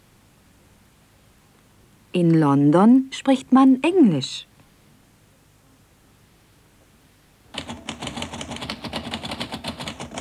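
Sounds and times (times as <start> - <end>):
speech: 2.1 - 4.5
typing on a typewriter: 7.5 - 10.2.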